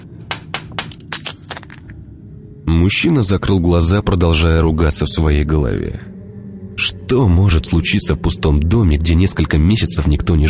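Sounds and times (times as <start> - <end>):
stunned crow pecking against cracked window glass: 0.8 - 2.0
speech: 2.8 - 6.1, 6.8 - 10.4.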